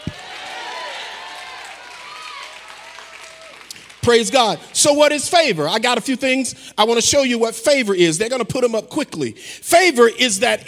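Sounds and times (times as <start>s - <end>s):
audience clapping once: 0.0s - 4.1s
crowd noise with scattered applause and cheering: 0.0s - 5.0s
speech: 4.0s - 10.6s.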